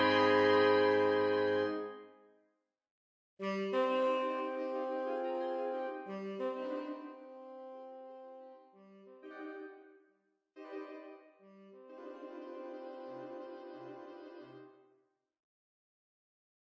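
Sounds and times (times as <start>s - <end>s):
saxophone: 0.0s - 2.1s, 3.4s - 9.9s, 11.4s - 14.8s.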